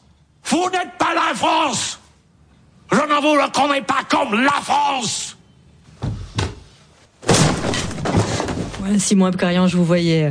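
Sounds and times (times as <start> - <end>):
speech: 0.5 - 2.0, 2.9 - 5.4, 8.8 - 10.2
chair smashed during a heated argument in a film scene: 7.2 - 8.8.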